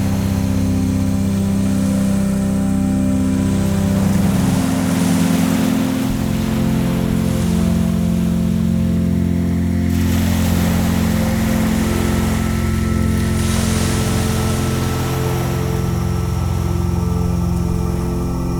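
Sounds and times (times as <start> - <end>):
relaxing music: 0.0 - 18.5.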